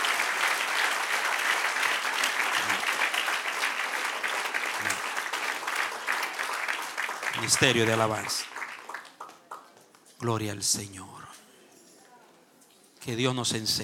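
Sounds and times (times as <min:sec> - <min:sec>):
crowd applause: 0:00.0 - 0:09.8
speech: 0:07.4 - 0:08.5, 0:10.2 - 0:11.2, 0:13.0 - 0:13.8.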